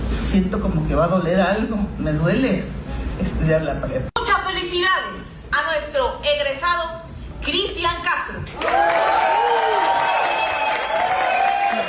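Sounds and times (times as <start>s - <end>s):
speech: 0.3s - 10.1s
crowd applauding: 8.5s - 11.8s
people cheering: 8.5s - 11.8s.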